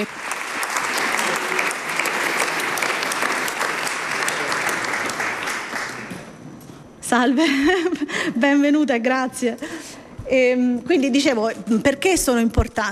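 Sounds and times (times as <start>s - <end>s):
warm applause welcoming a government minister: 0.0s - 6.4s
speech: 7.2s - 12.9s.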